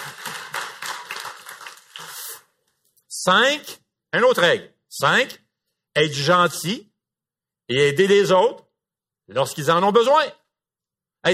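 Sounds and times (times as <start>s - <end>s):
audience applause: 0.0s - 2.3s
speech: 3.2s - 5.4s, 6.0s - 6.9s, 7.7s - 8.6s, 9.3s - 10.4s.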